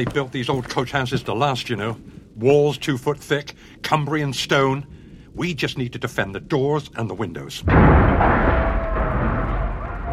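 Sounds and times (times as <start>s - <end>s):
speech: 0.0s - 8.5s
cars blowing up: 7.6s - 10.1s.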